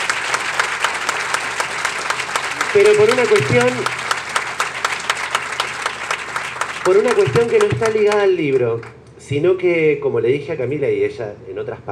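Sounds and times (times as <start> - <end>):
audience applause: 0.0 - 8.9
speech: 2.8 - 4.0, 6.8 - 11.9.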